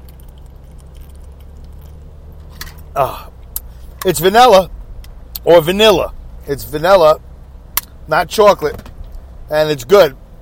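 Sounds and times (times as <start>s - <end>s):
sipping a protein drink: 0.0s - 2.0s
speech: 3.0s - 3.3s, 4.0s - 4.8s, 5.4s - 7.2s, 8.1s - 8.9s, 9.5s - 10.2s.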